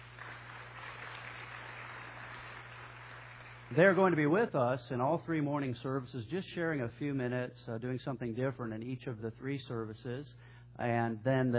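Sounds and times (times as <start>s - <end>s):
audience applauding: 0.0s - 3.8s
speech: 3.7s - 11.5s.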